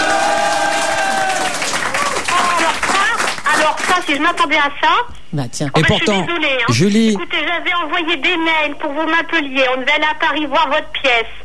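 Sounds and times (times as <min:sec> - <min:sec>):
studio audience cheering: 0:00.0 - 0:03.8
studio audience applauding: 0:00.0 - 0:04.4
speech: 0:04.0 - 0:11.4.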